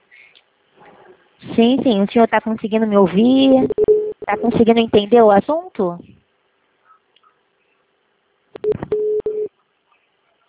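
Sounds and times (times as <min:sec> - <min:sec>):
speech: 0:01.6 - 0:06.1
telephone incoming second-call signal beeps and tones: 0:08.6 - 0:09.5.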